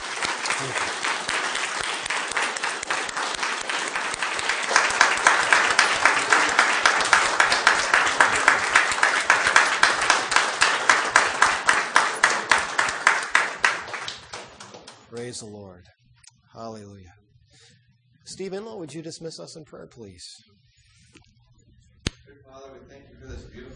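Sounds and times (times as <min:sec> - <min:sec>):
audience clapping: 0:00.0 - 0:15.5
speech: 0:00.6 - 0:01.0, 0:15.4 - 0:15.6, 0:18.4 - 0:20.6.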